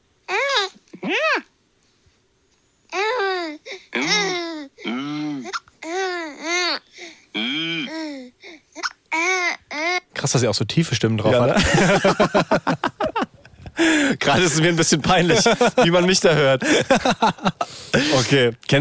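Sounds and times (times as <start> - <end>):
baby babbling: 0.3 - 1.5, 2.9 - 10.0
speech: 10.3 - 13.0, 13.8 - 18.7
laughter: 11.4 - 13.4, 15.2 - 18.2.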